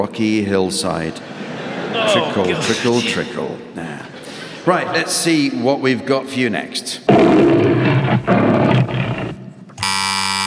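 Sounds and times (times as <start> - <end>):
speech: 0.0 - 9.0
laughter: 1.1 - 5.0
lion roar from film studio intro: 7.1 - 9.6
steady harsh buzzer tone: 9.8 - 10.4.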